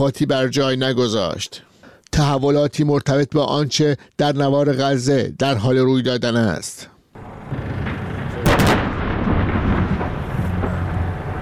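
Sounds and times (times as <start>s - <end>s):
speech: 0.0s - 6.9s
artillery fire: 7.2s - 11.4s
deep continuous rumble: 7.2s - 11.4s.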